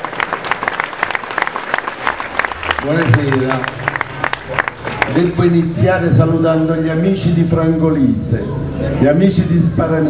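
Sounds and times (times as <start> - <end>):
applause from an audience welcoming a storyteller on stage: 0.0 - 6.0
speech: 2.8 - 3.8, 4.5 - 10.0.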